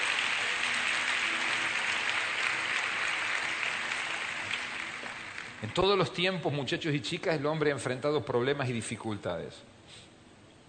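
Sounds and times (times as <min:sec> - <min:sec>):
audience applause: 0:00.0 - 0:06.2
speech: 0:05.6 - 0:10.0.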